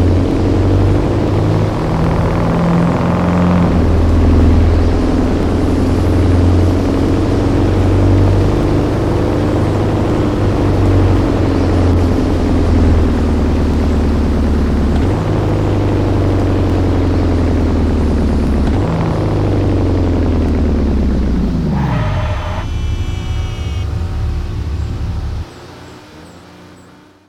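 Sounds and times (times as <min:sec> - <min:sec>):
Saleen S331 Supercab truck: 0:00.0 - 0:27.2.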